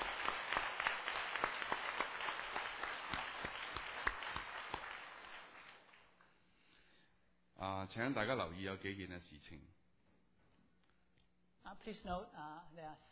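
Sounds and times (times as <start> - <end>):
audience applause welcoming a symphonic band: 0.0 - 6.5
speech: 7.6 - 9.8, 11.7 - 13.1.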